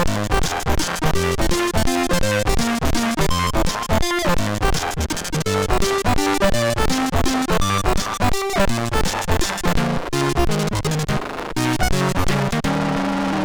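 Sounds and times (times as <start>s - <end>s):
chiptune music from MOS6581R3 SID chip: 0.0s - 13.4s.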